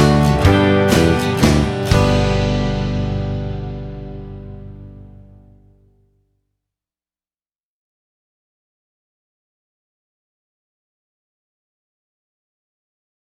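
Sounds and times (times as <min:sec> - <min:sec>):
waltz in G without guitar: 0:00.0 - 0:05.4.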